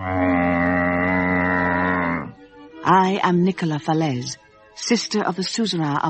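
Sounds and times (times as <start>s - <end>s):
cow mooing: 0.0s - 2.4s
speech: 2.9s - 6.0s.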